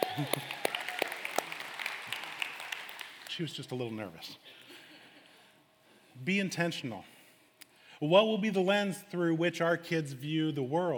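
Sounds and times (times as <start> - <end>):
audience clapping: 0.0 - 3.8
speech: 0.2 - 0.6, 3.4 - 4.6, 6.2 - 7.2, 8.0 - 10.9.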